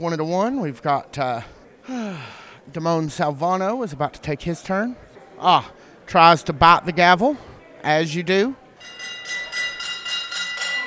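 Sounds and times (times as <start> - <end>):
speech: 0.0 - 8.6
wrestling ring bell being rung: 8.8 - 10.8.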